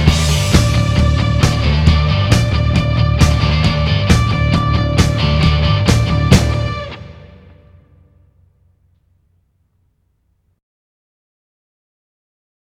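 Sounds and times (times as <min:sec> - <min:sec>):
instrumental music: 0:00.0 - 0:09.8.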